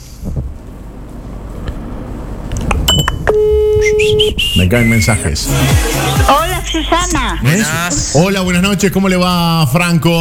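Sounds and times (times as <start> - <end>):
electronic telephone beeps as a call is placed: 2.9 - 4.4
speech: 4.6 - 10.1.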